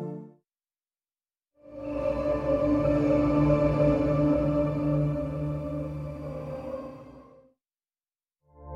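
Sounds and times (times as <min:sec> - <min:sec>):
drone pads: 0:01.7 - 0:07.3.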